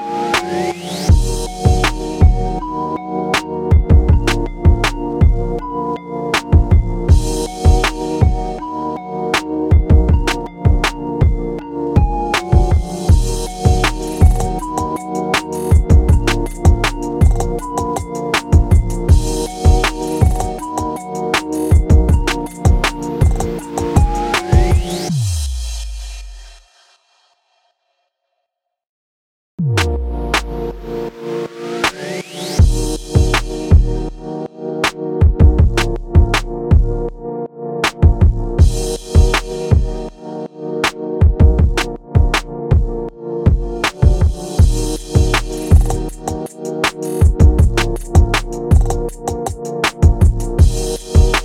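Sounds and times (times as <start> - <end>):
urban beat: 0.4 - 2.8, 3.4 - 5.6, 6.4 - 8.6, 9.4 - 25.1, 31.9 - 34.2, 35.2 - 37.1, 37.9 - 40.1, 40.9 - 51.4.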